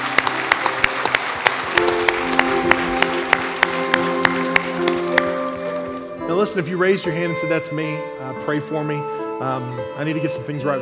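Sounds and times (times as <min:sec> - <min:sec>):
audience clapping: 0:00.0 - 0:06.1
speech: 0:06.4 - 0:10.8.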